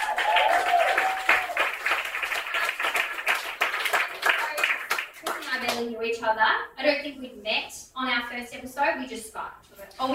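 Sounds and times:
round of applause: 0.0s - 5.8s
speech: 6.2s - 10.1s.

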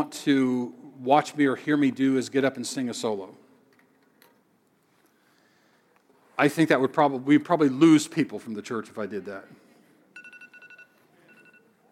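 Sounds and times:
speech: 0.0s - 3.4s, 6.4s - 9.6s
timer alarm beeping: 10.2s - 11.8s.

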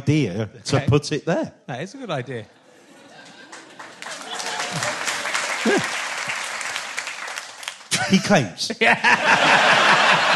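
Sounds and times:
speech: 0.0s - 2.6s, 5.6s - 6.0s, 8.0s - 10.3s
laughter: 2.5s - 6.1s, 7.9s - 10.3s
audience applause: 3.1s - 8.2s.

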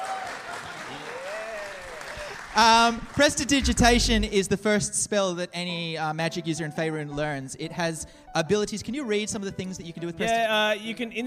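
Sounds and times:
audience applause: 0.0s - 3.6s
speech: 2.6s - 11.2s.

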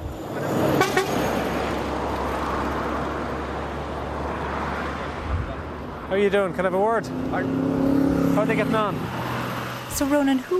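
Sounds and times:
cars and trucks passing on a road: 0.0s - 10.5s
car horn toot: 0.8s - 1.2s
speech: 6.1s - 9.2s, 9.9s - 10.5s.

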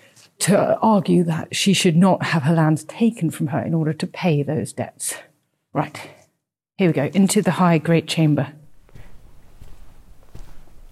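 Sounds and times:
speech: 0.4s - 6.2s, 6.8s - 8.6s
footsteps climbing the stairs of Hardwick Hall: 8.6s - 10.9s.

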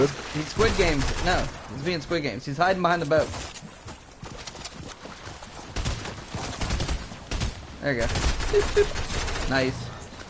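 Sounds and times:
speech: 0.0s - 3.6s, 7.8s - 9.8s
video game gunfire: 5.8s - 9.8s.

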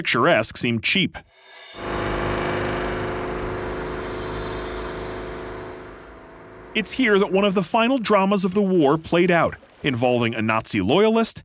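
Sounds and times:
speech: 0.0s - 2.0s, 6.8s - 11.4s
car engine and road rumble driving toward Lake Fuschel: 1.7s - 7.6s.

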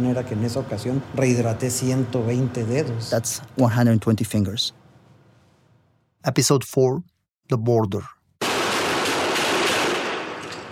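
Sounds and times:
speech: 0.0s - 4.8s, 6.2s - 8.2s
rapid gunfire in a gunfight between Mexican federal officers and a drug gang: 8.4s - 10.4s.

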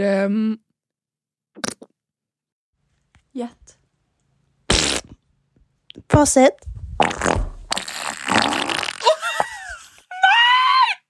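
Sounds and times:
speech: 0.0s - 0.7s, 3.4s - 3.7s, 6.0s - 7.4s
fart: 1.6s - 1.9s, 4.7s - 5.2s, 7.0s - 9.2s.

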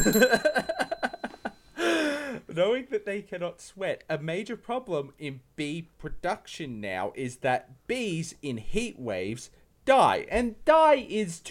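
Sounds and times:
speech: 0.0s - 0.6s, 3.2s - 11.4s
bell sound effect ringing: 0.0s - 2.2s.

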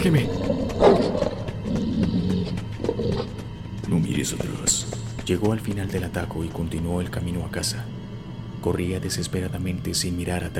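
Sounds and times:
speech: 0.0s - 0.5s, 3.9s - 8.0s, 8.6s - 10.5s
beasts growling: 0.0s - 5.1s.

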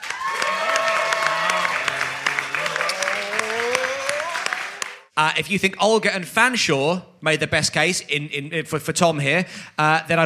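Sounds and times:
audience clapping: 0.0s - 5.2s
speech: 5.2s - 10.2s.

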